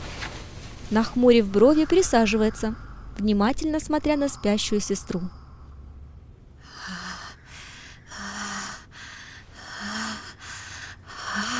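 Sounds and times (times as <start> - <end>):
speech: 0.9 - 5.4
child breathing heavily with rasping breaths: 6.6 - 11.5.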